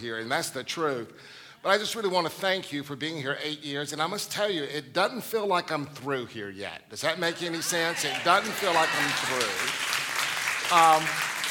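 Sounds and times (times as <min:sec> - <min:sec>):
speech: 0:00.0 - 0:09.9, 0:10.7 - 0:11.3
audience applause: 0:07.4 - 0:11.5.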